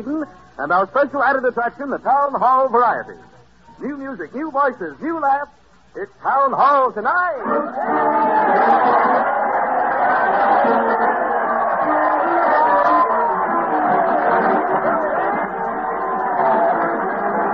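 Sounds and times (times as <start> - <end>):
speech: 0.0 - 9.4
large crowd cheering and shouting: 6.7 - 17.5.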